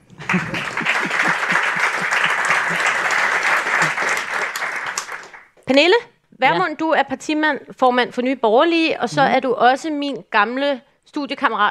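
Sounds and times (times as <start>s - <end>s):
laughter: 0.0s - 5.0s
audience applause: 0.0s - 5.6s
speech: 0.3s - 0.6s, 5.7s - 11.6s.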